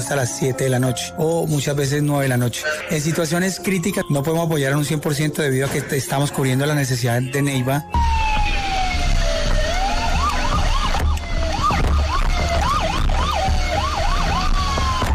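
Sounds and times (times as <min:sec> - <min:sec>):
speech: 0:00.0 - 0:08.3
fire station alarm siren: 0:02.6 - 0:05.3, 0:07.3 - 0:15.1.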